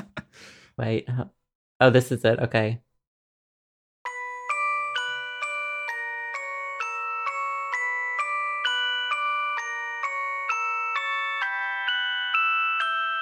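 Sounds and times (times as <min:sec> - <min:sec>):
speech: 0:00.8 - 0:02.9
phone ringtone melody: 0:04.1 - 0:13.1.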